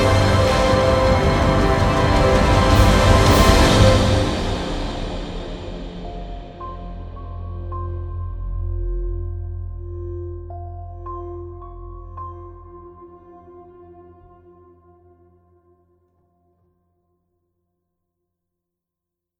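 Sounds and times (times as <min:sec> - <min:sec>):
trailer brass: 0:00.0 - 0:07.7.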